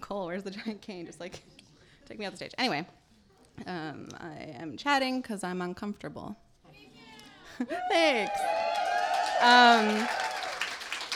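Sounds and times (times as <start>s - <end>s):
speech: 0.1s - 3.0s, 3.6s - 6.9s, 7.6s - 8.6s, 9.4s - 10.2s
audience clapping: 8.1s - 11.1s.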